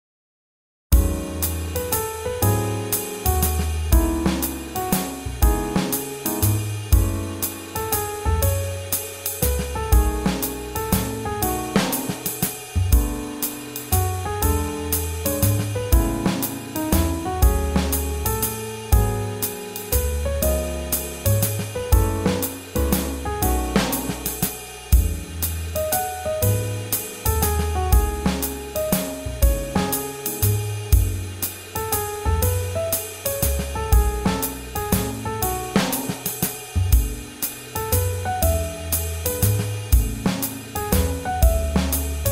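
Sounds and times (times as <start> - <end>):
swing jazz: 1.0 - 42.2.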